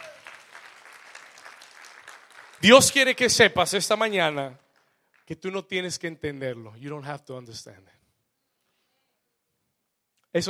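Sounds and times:
audience applauding: 0:00.0 - 0:05.4
speech: 0:02.6 - 0:04.6, 0:05.3 - 0:08.0.

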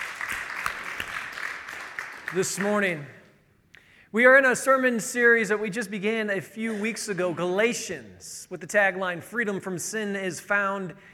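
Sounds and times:
audience applause: 0:00.0 - 0:02.8
speech: 0:02.3 - 0:03.2, 0:04.1 - 0:11.1.

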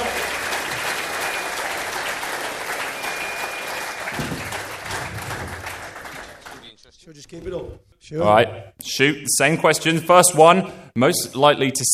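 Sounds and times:
audience applauding: 0:00.0 - 0:06.8
speech: 0:07.3 - 0:11.9.

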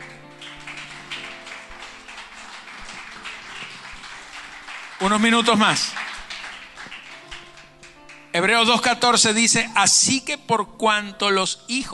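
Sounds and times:
audience applause: 0:00.0 - 0:08.3
speech: 0:05.0 - 0:06.0, 0:08.4 - 0:11.9.

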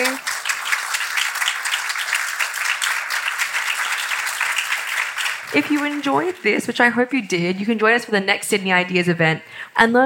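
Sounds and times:
audience applause: 0:00.0 - 0:06.6
speech: 0:05.5 - 0:10.0.

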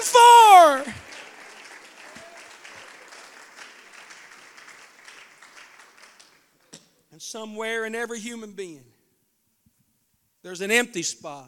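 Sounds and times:
audience standing and clapping hands: 0:00.0 - 0:06.8
speech: 0:07.2 - 0:09.0, 0:10.4 - 0:11.4.

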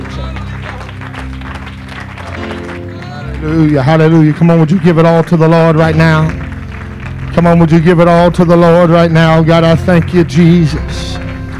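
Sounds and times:
church congregation clapping to welcome a guest preacher: 0:00.0 - 0:11.5
speech: 0:03.4 - 0:06.4, 0:07.4 - 0:11.2.

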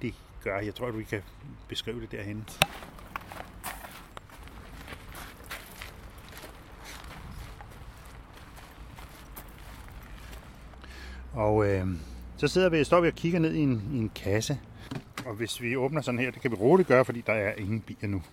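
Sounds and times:
speech: 0:00.0 - 0:03.0, 0:11.4 - 0:18.3
footsteps walking over rough ground to beehives: 0:02.5 - 0:10.8.

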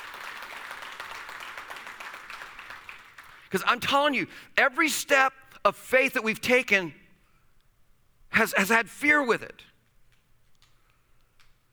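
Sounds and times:
audience applause: 0:00.0 - 0:03.5
speech: 0:03.5 - 0:07.0, 0:08.3 - 0:09.7.

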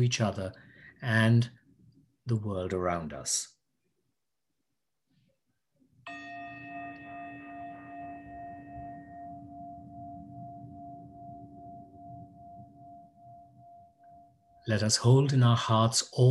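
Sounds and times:
speech: 0:00.0 - 0:01.6, 0:02.3 - 0:03.6, 0:14.7 - 0:16.2
meditation chime ringing: 0:06.1 - 0:15.2.

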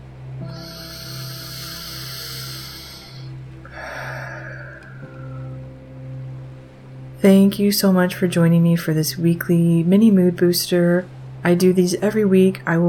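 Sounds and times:
steady low drone: 0:00.0 - 0:12.8
deep breath in through the nose and out through the mouth: 0:00.4 - 0:05.8
speech: 0:07.2 - 0:12.8.

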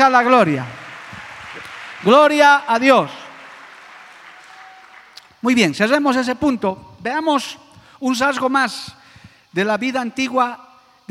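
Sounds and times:
speech: 0:00.0 - 0:00.8, 0:02.0 - 0:03.2, 0:05.4 - 0:11.1
audience applause: 0:00.0 - 0:05.4.

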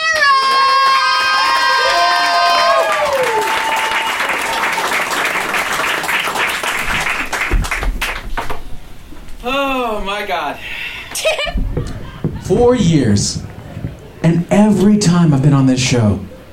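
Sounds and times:
audience applause: 0:00.1 - 0:08.6, 0:11.7 - 0:15.4
speech: 0:10.3 - 0:11.6, 0:12.5 - 0:13.5, 0:14.3 - 0:16.3
laughter: 0:11.1 - 0:13.9.

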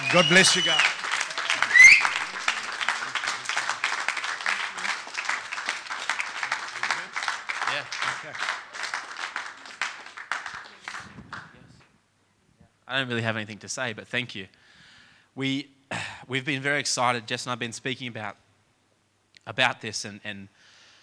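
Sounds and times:
audience applause: 0:00.0 - 0:11.1
speech: 0:00.1 - 0:01.0, 0:13.0 - 0:14.8, 0:15.4 - 0:18.4, 0:19.4 - 0:20.7.

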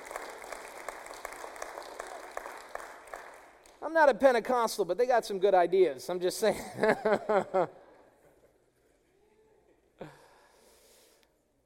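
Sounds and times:
audience clapping: 0:00.0 - 0:03.9
speech: 0:03.9 - 0:07.8.

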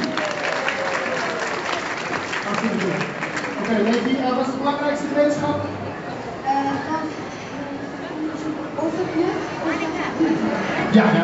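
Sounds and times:
audience applauding: 0:00.0 - 0:04.5
murmur of voices: 0:00.0 - 0:11.2
speech: 0:02.7 - 0:05.8, 0:10.9 - 0:11.2.

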